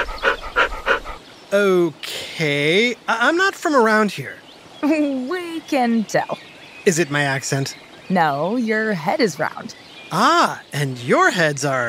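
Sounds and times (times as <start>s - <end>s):
video game wolf panting: 0.0s - 1.2s
speech: 1.5s - 11.8s.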